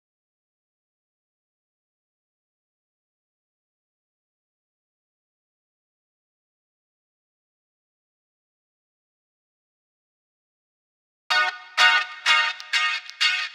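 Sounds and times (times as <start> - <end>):
frozen guitar tone: 11.3 - 13.5.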